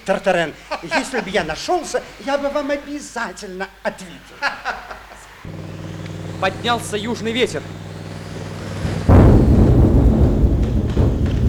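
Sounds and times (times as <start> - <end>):
laughter: 0.0 - 2.9, 3.6 - 5.5
speech: 0.0 - 5.6, 6.4 - 7.8
icebergs colliding with crashing ice: 6.3 - 11.4.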